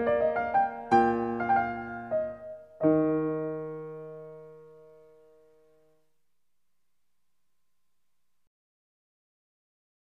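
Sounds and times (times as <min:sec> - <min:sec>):
classical keyboard invention in E flat: 0:00.0 - 0:06.0.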